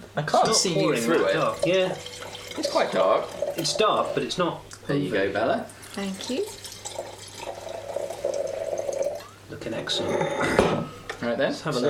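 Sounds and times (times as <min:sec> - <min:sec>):
speech: 0:00.2 - 0:06.6, 0:09.6 - 0:11.8
wine pouring into a glass: 0:00.5 - 0:04.6, 0:05.6 - 0:09.3.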